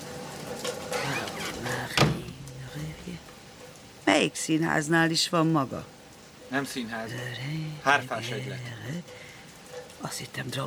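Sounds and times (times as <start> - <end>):
door creaking: 0.7 - 2.6
door shutting with a thud: 1.4 - 2.4
speech: 4.2 - 9.3, 10.0 - 10.6.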